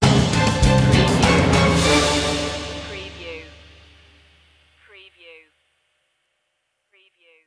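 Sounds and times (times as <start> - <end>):
spooky stinger: 0.0 - 4.3.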